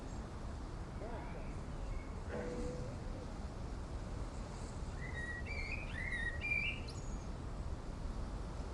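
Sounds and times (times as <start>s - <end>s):
wind on the top of a mountain in Erice, Sicily, Italy: 0.0s - 8.7s
birds on a mountain top in Erice, Sicily, Italy: 0.9s - 3.4s, 4.4s - 7.4s
people chatting briefly on a mountain top in Erice, Sicily, Italy: 1.0s - 1.5s.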